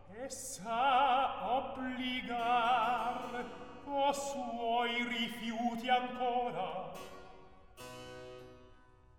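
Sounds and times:
recitative singing: 0.0s - 7.0s.

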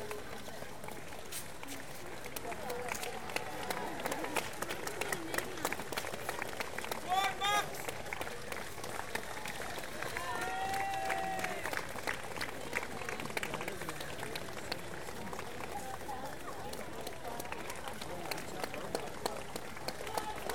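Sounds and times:
footsteps at the London Marathon: 0.0s - 3.2s
street crowd applause at the London Marathon: 0.0s - 20.5s
street crowd cheering at the London Marathon: 2.4s - 14.4s, 17.3s - 20.5s.

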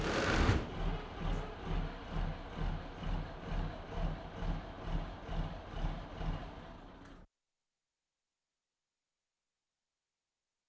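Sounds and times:
fire engine engaging main: 0.0s - 7.2s.

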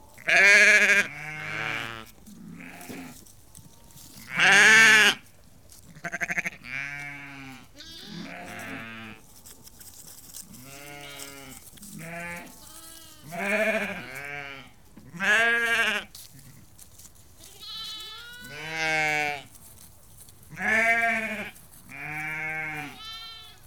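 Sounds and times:
sheep flock bleating, ewes and lambs: 0.2s - 3.2s, 4.2s - 5.2s, 6.0s - 9.2s, 10.6s - 16.6s, 17.4s - 19.5s, 20.5s - 23.6s.

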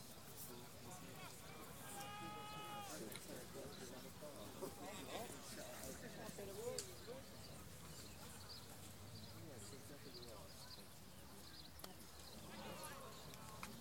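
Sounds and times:
sports crowd at a county cricket match in Clarence Park St Albans: 0.0s - 13.7s.

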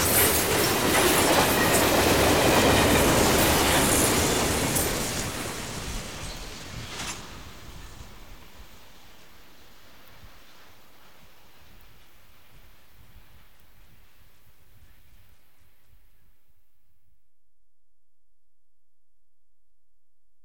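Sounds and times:
freight train passing in the desert near Kingman Arizona: 0.0s - 13.4s.

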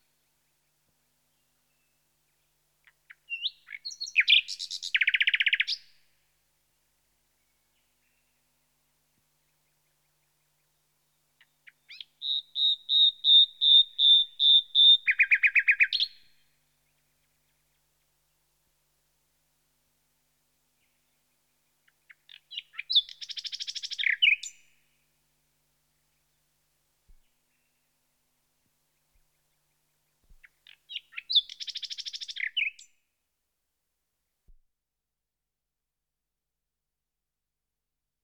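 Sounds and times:
nightingale Luscinia Megarhyncho singing: 2.8s - 6.0s, 11.4s - 17.6s, 21.8s - 24.7s, 30.4s - 32.9s.

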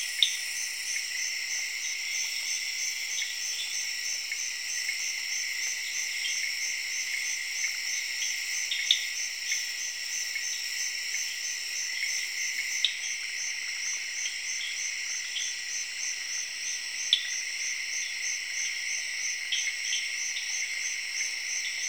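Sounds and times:
cricket chorus trilling in the jungle in Zaire: 0.0s - 21.8s.

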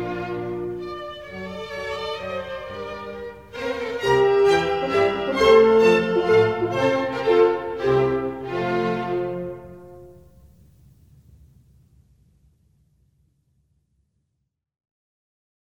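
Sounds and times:
minuet in F major: 0.0s - 10.4s.

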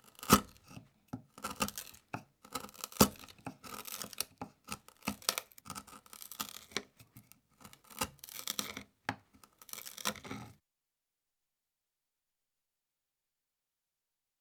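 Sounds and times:
chisel splintering wood in construction: 0.0s - 10.5s.

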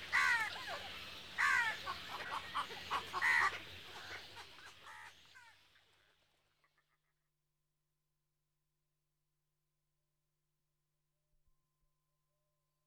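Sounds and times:
Asian darter and water birds calling: 0.0s - 5.7s.

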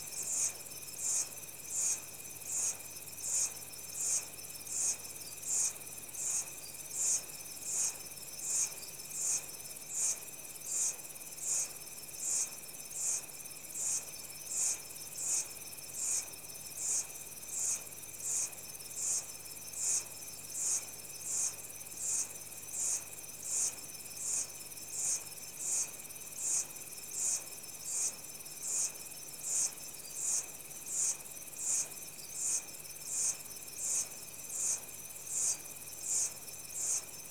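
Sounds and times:
insects in tropical rainforest in Central Africa Republic: 0.0s - 37.3s.

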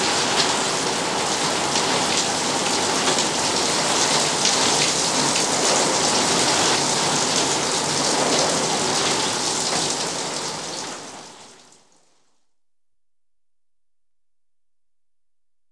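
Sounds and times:
rain on a corrugated iron shed roof: 0.0s - 12.2s.

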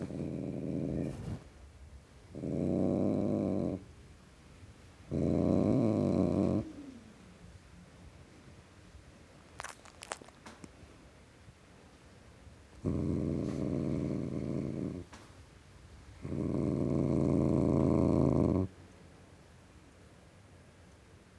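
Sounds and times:
male tom cat growling: 0.0s - 1.4s, 2.3s - 3.8s, 5.1s - 7.3s, 12.8s - 15.1s, 16.2s - 18.7s.

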